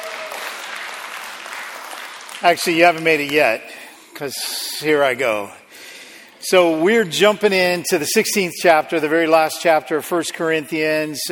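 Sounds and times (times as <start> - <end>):
crowd clapping: 0.0 - 3.7
speech: 2.4 - 5.6, 6.4 - 11.3.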